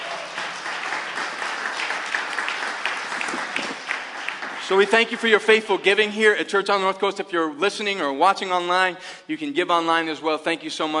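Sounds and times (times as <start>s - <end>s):
audience applause: 0.0s - 5.8s
speech: 4.7s - 10.9s.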